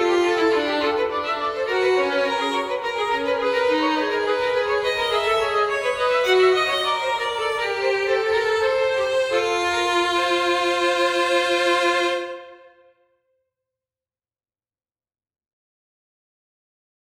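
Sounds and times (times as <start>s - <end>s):
two violins playing a ricercare: 0.0s - 12.8s.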